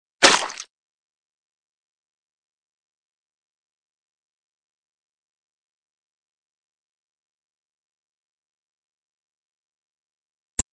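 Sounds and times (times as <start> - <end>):
fight sounds: 0.2 - 0.6.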